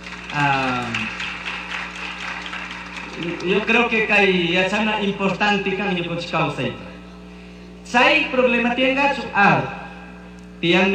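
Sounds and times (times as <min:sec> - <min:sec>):
audience applause: 0:00.0 - 0:04.4
speech: 0:00.3 - 0:01.2, 0:03.2 - 0:06.9, 0:07.9 - 0:09.8, 0:10.6 - 0:10.9.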